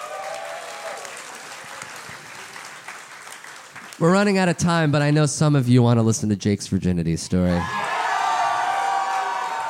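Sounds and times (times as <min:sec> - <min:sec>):
live audience applauding: 0:00.0 - 0:04.4, 0:07.8 - 0:09.6
speech: 0:04.0 - 0:07.8.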